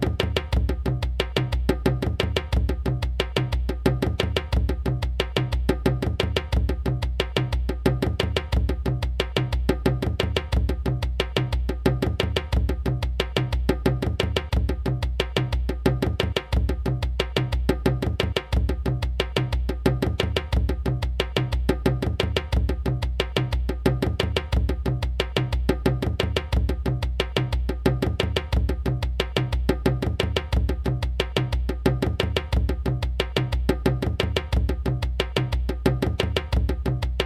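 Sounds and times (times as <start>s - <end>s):
djembe drumming: 0.0s - 37.2s.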